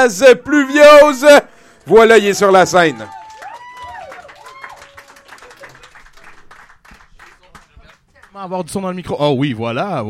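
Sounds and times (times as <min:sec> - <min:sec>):
speech: 0:00.0 - 0:03.2, 0:08.4 - 0:10.0
cheering voices: 0:00.1 - 0:06.4
crowd applauding at live show: 0:01.8 - 0:08.5.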